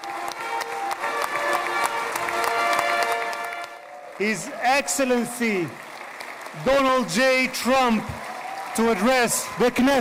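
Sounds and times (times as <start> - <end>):
fanfare in the Israeli Knesset: 0.0 - 3.8
crowd applauding Donald Trump in the Israeli Knesset: 0.0 - 10.0
speech: 4.2 - 5.8, 6.6 - 8.2, 8.8 - 10.0.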